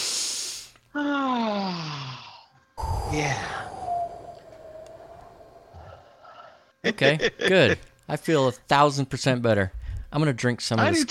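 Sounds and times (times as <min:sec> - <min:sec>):
deep breath: 0:02.3 - 0:06.8, 0:09.8 - 0:10.1
speech: 0:03.1 - 0:03.5, 0:07.0 - 0:11.0.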